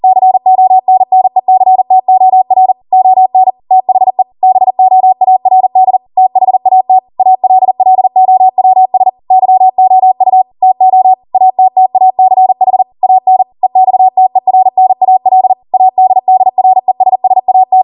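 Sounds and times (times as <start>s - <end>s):
Morse code practice beeps: 0.0s - 17.8s.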